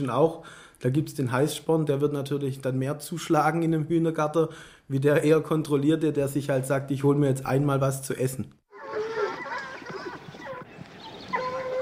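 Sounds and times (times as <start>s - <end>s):
speech: 0.0s - 8.6s
pack of hunting hounds baying and barking during a mounted hunt: 8.7s - 11.7s.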